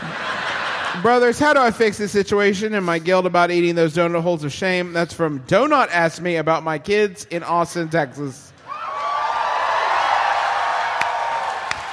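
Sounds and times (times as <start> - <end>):
laughter: 0.0 - 2.1
speech: 1.0 - 8.5
crowd cheering and whooping: 8.6 - 11.9.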